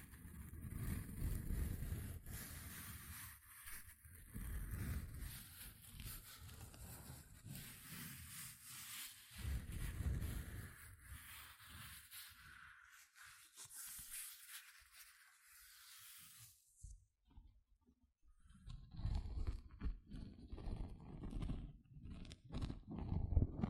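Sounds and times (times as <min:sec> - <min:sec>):
gentle scratching: 0:00.0 - 0:16.6, 0:18.6 - 0:23.6.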